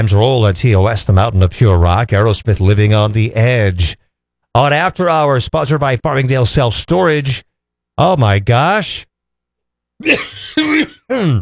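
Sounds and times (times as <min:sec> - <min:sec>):
speech: 0:00.0 - 0:09.1, 0:10.0 - 0:11.4
person with a cold coughing: 0:10.0 - 0:11.4.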